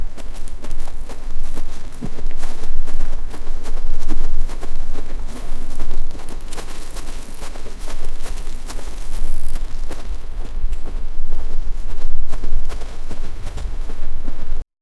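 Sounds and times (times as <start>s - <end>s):
group of animals walking: 0.0s - 14.6s.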